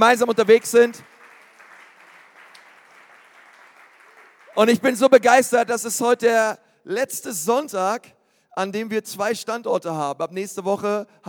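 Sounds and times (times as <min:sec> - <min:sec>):
speech: 0:00.0 - 0:01.1, 0:04.6 - 0:11.2
audience applause: 0:00.0 - 0:05.0.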